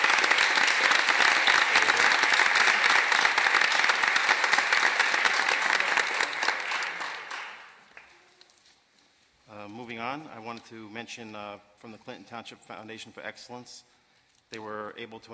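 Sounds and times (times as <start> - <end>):
audience applause: 0.0 - 8.2
speech: 10.6 - 13.9, 14.5 - 15.3.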